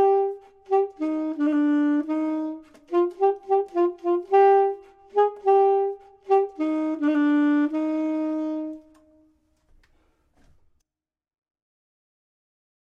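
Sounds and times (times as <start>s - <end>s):
clarinet: 0.0s - 9.4s
saxophone: 0.0s - 9.4s.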